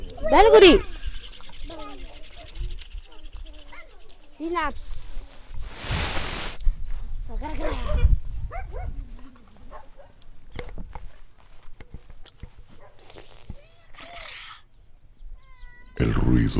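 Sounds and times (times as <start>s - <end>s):
speech: 0.2s - 1.0s, 4.4s - 5.0s, 7.4s - 8.2s, 16.0s - 16.5s
loud harsh burst: 5.3s - 6.6s.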